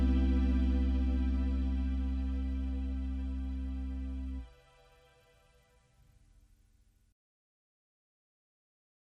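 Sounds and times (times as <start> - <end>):
refreshing wakeup call underscore music: 0.0 - 5.2.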